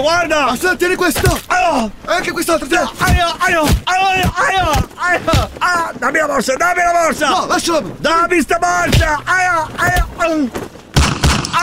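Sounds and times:
animated voices: 0.0 - 10.6
speech: 0.0 - 10.7
gunshot sound effects in a comic Italian radio sketch: 10.9 - 11.6.

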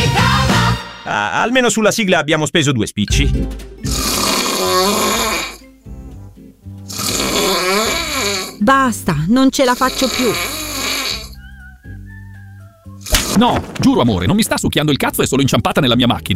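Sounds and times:
speech: 1.1 - 4.0, 4.7 - 5.2, 8.6 - 10.5, 13.4 - 16.3
person snoring: 3.8 - 5.7, 6.9 - 8.6, 9.6 - 11.4, 13.0 - 13.6.

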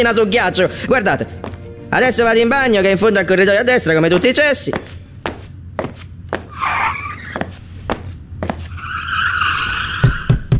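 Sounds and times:
speech: 0.0 - 4.9
race car tires skidding: 6.4 - 7.8, 8.4 - 10.5.

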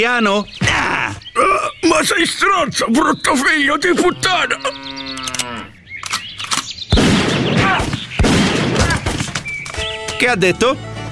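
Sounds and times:
speech: 0.0 - 0.7, 1.4 - 4.9, 10.2 - 10.9
gunshots from a cowboy by a pickup truck: 6.9 - 9.6
people shouting: 7.5 - 8.0.

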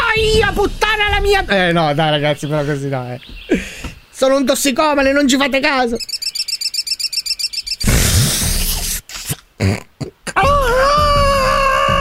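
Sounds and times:
speech: 0.2 - 6.2, 9.6 - 10.9
voice imitating a budgerigar chirping and squawking: 5.9 - 10.4.

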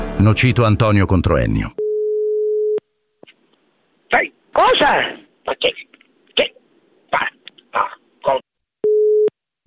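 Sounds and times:
speech: 0.2 - 1.8, 4.1 - 6.6, 7.1 - 8.5
telephone busy tone after phone hang-up: 1.8 - 2.8, 8.9 - 9.3.

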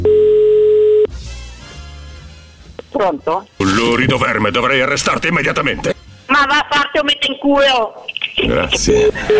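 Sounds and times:
outgoing telephone call tone: 0.0 - 1.1
speech: 3.0 - 9.3.

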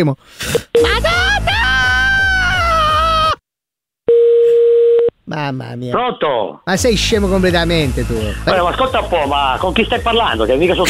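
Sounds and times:
speech: 0.0 - 1.6, 5.3 - 10.8
person crying out: 0.8 - 3.4
phone busy tone after receiver hung up: 4.1 - 5.1.

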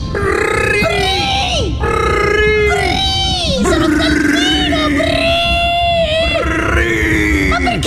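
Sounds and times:
pod of dolphins calling among the waves: 0.1 - 7.8.

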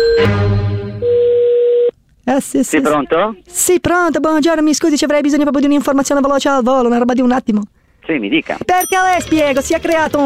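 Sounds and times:
telephone tone after the other party hangs up: 1.0 - 1.9
speech: 2.3 - 10.2.

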